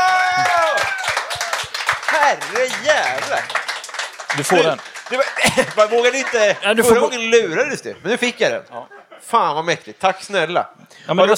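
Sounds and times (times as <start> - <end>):
hand clapping applause: 0.0 - 7.4
speech: 2.3 - 3.6, 4.3 - 11.3
laughter: 4.3 - 9.4.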